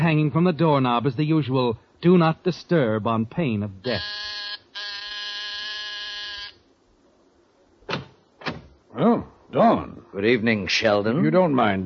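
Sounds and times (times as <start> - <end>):
speech: 0.0 - 4.4, 9.0 - 11.8
apartment door buzzer: 3.9 - 6.6.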